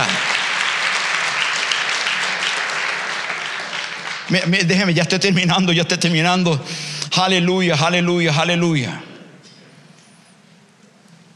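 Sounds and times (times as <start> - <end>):
audience applauding loudly: 0.0 - 5.4
speech: 4.3 - 9.1.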